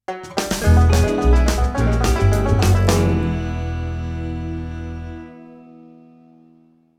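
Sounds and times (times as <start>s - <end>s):
minigame lost jingle: 0.7s - 4.4s.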